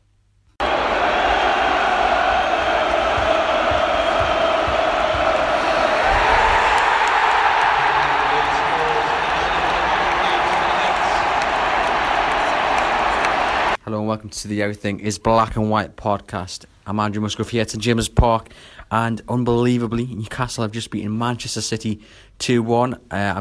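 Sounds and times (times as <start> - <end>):
huge football stadium crowd cheering, chanting and shouting: 0.6 - 13.8
speech: 14.3 - 23.3.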